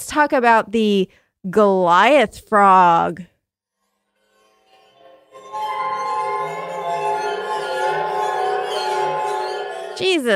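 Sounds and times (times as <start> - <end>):
speech: 0.1 - 3.3, 10.0 - 10.3
waterphone played as spooky sound: 4.8 - 10.3.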